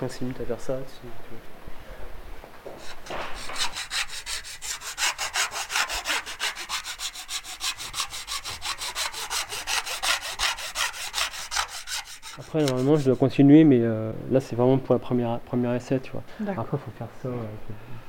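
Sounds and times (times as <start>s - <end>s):
speech: 0.0s - 1.6s, 12.5s - 18.0s
file rasping along the edge of a plate: 2.8s - 13.4s.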